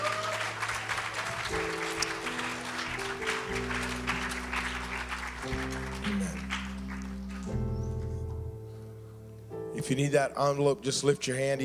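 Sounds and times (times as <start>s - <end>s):
audience applause, hand clap of praise: 0.0s - 7.6s
sustained organ or keyboard chords: 0.0s - 11.6s
speech: 9.9s - 11.6s.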